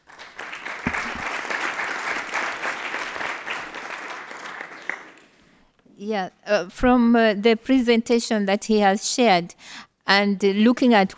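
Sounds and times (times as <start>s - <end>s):
audience applause, hand clapping: 0.0s - 5.5s
speech: 6.0s - 11.1s.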